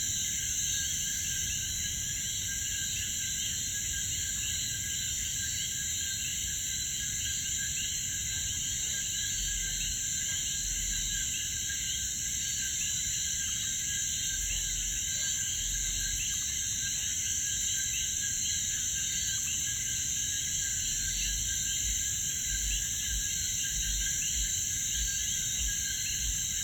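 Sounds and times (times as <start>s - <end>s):
frogs in Puerto Rico: 0.0s - 26.6s.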